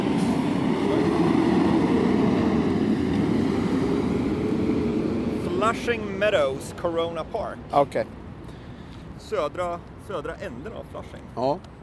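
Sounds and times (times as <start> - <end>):
fire truck passing with red lights on: 0.0 - 7.5
speech: 5.7 - 8.2, 9.3 - 11.7.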